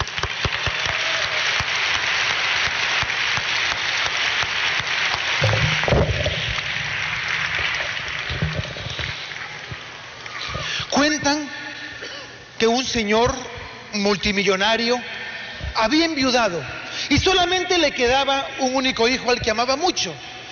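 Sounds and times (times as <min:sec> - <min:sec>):
audience applause: 0:00.0 - 0:10.6
speech: 0:12.8 - 0:13.4, 0:14.0 - 0:15.1, 0:15.8 - 0:20.3.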